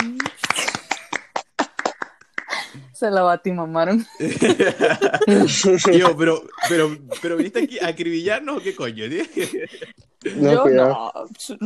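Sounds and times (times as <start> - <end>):
scattered hand claps from a small group: 0.0 - 2.6
speech: 3.0 - 11.6
laughter: 4.2 - 10.6.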